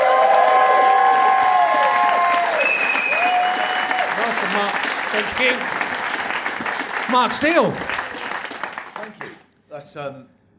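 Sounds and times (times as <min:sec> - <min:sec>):
audience voices cheering: 0:00.0 - 0:05.8
audience applauding to welcome a comedian: 0:00.0 - 0:09.5
speech: 0:04.6 - 0:05.8, 0:07.1 - 0:07.9, 0:09.8 - 0:10.4.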